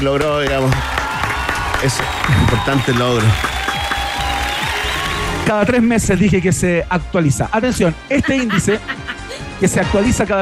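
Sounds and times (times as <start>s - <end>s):
speech: 0.0s - 1.0s, 1.8s - 3.5s, 5.5s - 9.0s, 9.6s - 10.3s
crowd clapping: 0.0s - 6.0s
laughter: 8.1s - 9.8s.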